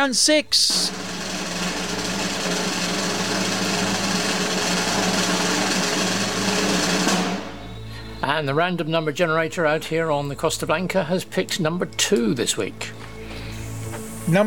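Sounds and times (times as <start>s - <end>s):
speech: 0.0s - 1.2s, 8.3s - 13.1s, 14.3s - 14.4s
drum roll ahead of a prize draw: 0.6s - 7.8s.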